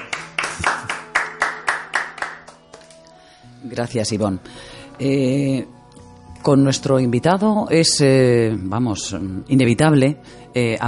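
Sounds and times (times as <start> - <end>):
audience applause: 0.0 - 2.6
speech: 3.7 - 5.8, 6.4 - 10.8.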